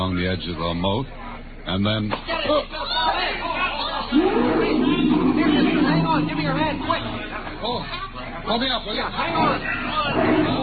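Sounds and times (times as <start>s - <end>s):
speech: 0.2s - 3.5s, 4.1s - 10.6s
crowd chatter at zoo: 2.6s - 10.6s
sustained low tone: 4.2s - 7.7s.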